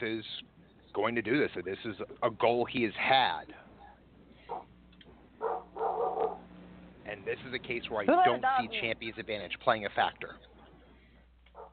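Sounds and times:
speech: 0:00.0 - 0:03.6, 0:07.1 - 0:10.5
dog barking outside: 0:04.5 - 0:04.7, 0:05.4 - 0:06.4, 0:11.5 - 0:11.7.

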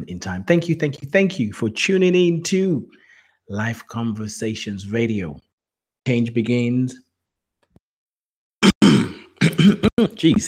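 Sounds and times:
speech: 0:00.0 - 0:07.0, 0:09.6 - 0:10.4
person clearing throat: 0:08.6 - 0:10.4.

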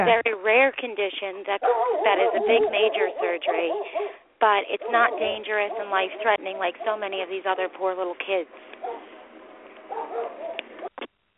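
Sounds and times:
speech: 0:00.0 - 0:09.1
dog barking: 0:01.6 - 0:07.0, 0:08.8 - 0:09.1, 0:09.9 - 0:10.6.

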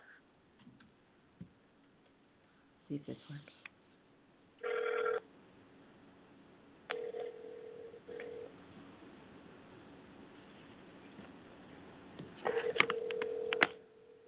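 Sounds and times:
speech: 0:02.9 - 0:03.6
telephone ringing over speakerphone: 0:04.6 - 0:05.2, 0:06.9 - 0:08.5, 0:12.4 - 0:14.2.

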